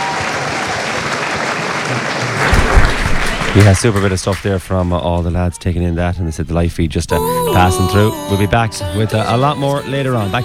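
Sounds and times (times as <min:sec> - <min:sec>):
audience round of applause: 0:00.0 - 0:05.5
speech: 0:03.6 - 0:10.4.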